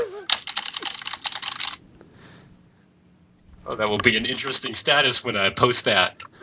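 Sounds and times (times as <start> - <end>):
typing on a computer keyboard: 0.3 - 1.8
speech: 3.7 - 6.4.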